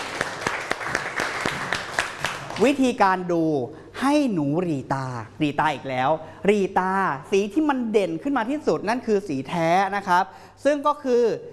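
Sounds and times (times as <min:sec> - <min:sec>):
children in a classroom clapping rhythmically: 0:00.0 - 0:02.8
speech: 0:02.6 - 0:11.5.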